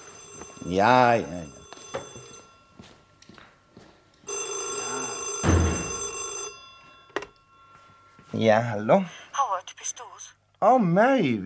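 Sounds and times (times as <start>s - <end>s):
old-fashioned telephone bell ringing: 0.0s - 3.1s, 4.2s - 9.3s
speech: 0.6s - 1.6s, 8.4s - 9.2s, 9.8s - 11.4s.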